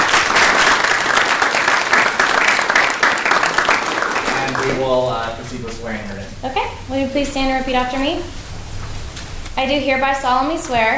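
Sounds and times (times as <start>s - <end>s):
audience applause: 0.0s - 5.8s
speech: 5.5s - 8.4s, 9.6s - 10.9s.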